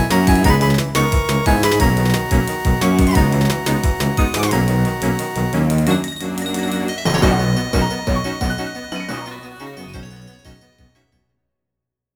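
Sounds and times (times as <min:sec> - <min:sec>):
bicycle: 0:00.0 - 0:09.1.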